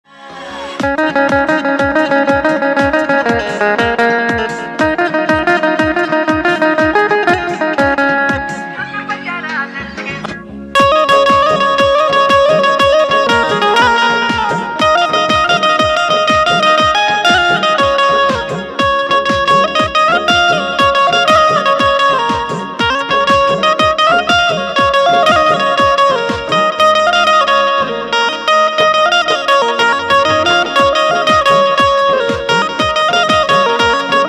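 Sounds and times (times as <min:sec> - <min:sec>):
banjo ringtone music: 0:00.1 - 0:34.2.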